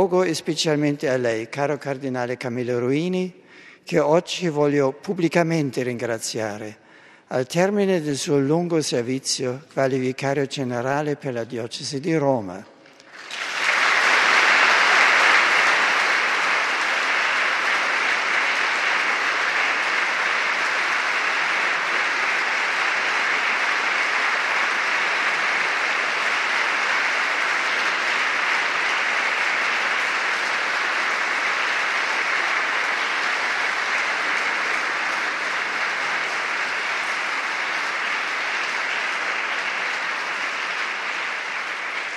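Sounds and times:
speech: 0.0 - 12.7
large crowd applauding: 12.9 - 42.1.

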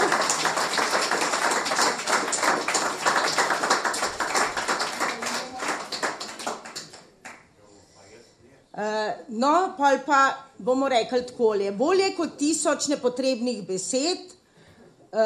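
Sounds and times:
audience applause: 0.0 - 7.4
speech: 9.4 - 14.4.

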